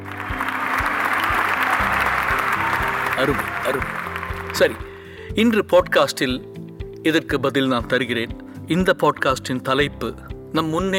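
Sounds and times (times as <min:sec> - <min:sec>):
students applauding a classmate: 0:00.0 - 0:05.2
speech: 0:03.2 - 0:10.9.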